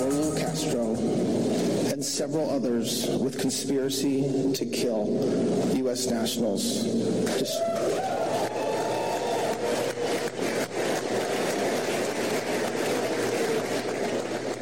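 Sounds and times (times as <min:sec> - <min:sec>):
speech: 0:00.4 - 0:01.3, 0:02.0 - 0:08.2
many hands clapping: 0:07.3 - 0:14.6
voice cheering: 0:07.4 - 0:10.4.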